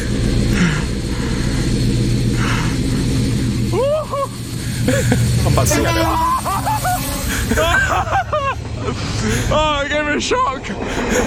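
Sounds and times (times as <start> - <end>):
class 56 diesel locomotive passing through station: 0.0 - 11.2
laughter: 3.7 - 9.7, 10.6 - 11.2
speech: 5.1 - 6.3, 7.5 - 8.2, 9.0 - 11.2.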